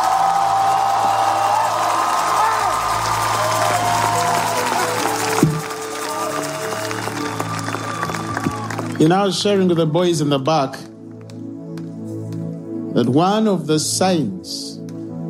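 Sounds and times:
audience clapping: 0:00.0 - 0:09.7
speech: 0:09.0 - 0:10.9, 0:13.0 - 0:14.6.

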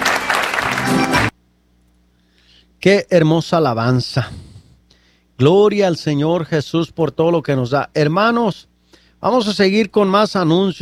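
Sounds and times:
audience applause: 0:00.0 - 0:01.3
speech: 0:02.8 - 0:04.5, 0:05.4 - 0:10.8.

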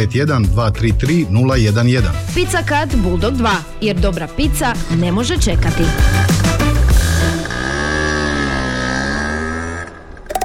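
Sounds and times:
speech: 0:00.0 - 0:06.4
electric bicycle motor humming: 0:04.8 - 0:10.3.

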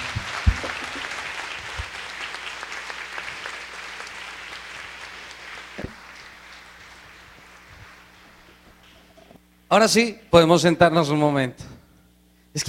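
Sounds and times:
audience applause: 0:00.0 - 0:09.1
speech: 0:09.7 - 0:11.6.

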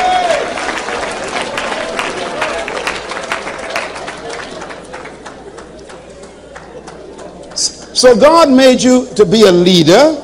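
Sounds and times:
audience clapping: 0:00.0 - 0:08.0
speech: 0:08.0 - 0:10.2.

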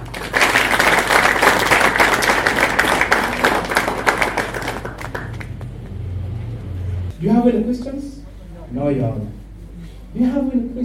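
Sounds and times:
audience applause welcoming a speaker: 0:00.0 - 0:06.1
speech: 0:07.3 - 0:09.4, 0:10.1 - 0:10.8.

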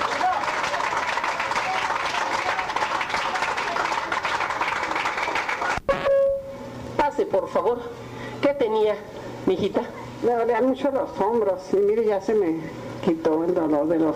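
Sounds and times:
audience applauding: 0:00.0 - 0:05.8
brief tonal ring: 0:05.9 - 0:06.7
speech: 0:07.4 - 0:14.1.

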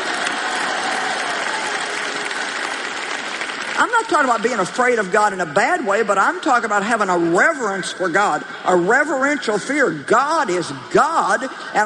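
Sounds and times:
audience applause: 0:00.0 - 0:04.6
speech: 0:03.8 - 0:11.8.

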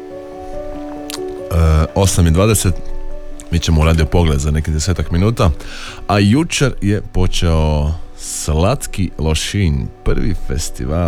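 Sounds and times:
steady tonal background: 0:00.0 - 0:11.0
radio host drinking water: 0:00.3 - 0:04.1, 0:05.5 - 0:06.0
speech: 0:01.5 - 0:02.9, 0:03.5 - 0:11.0.

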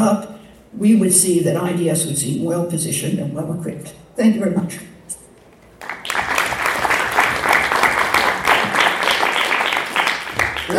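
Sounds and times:
speech: 0:00.1 - 0:04.9
audience applause: 0:05.8 - 0:10.7.

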